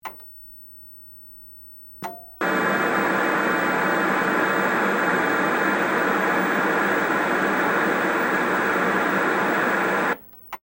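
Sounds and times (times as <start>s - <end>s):
large tube television static: 2.4s - 10.2s.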